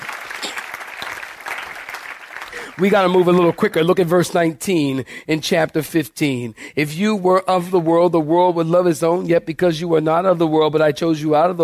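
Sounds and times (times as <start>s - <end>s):
audience clapping hands: 0.0s - 4.1s
speech: 2.6s - 11.6s.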